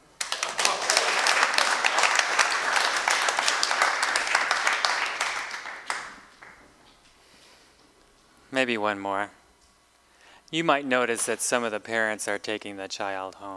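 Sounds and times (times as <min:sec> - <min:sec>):
audience clapping: 0:00.0 - 0:06.7
speech: 0:08.6 - 0:09.4, 0:10.5 - 0:13.5.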